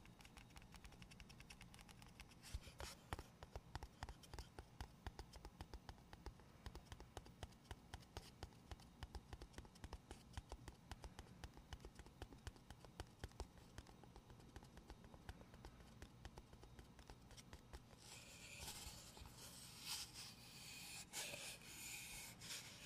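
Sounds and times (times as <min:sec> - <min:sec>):
gentle rapid tapping and light scratching: 0:00.0 - 0:22.8
bright hissy rubbing: 0:13.7 - 0:22.8.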